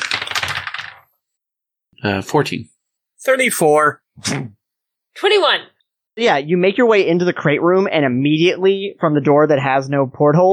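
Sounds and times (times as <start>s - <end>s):
dice being rolled: 0.0s - 1.1s
speech: 2.0s - 4.6s, 5.2s - 10.5s.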